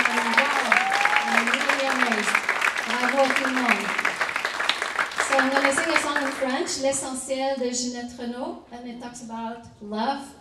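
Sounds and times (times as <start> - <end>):
applause: 0.0 - 7.1
speech: 3.2 - 4.0, 5.4 - 10.3.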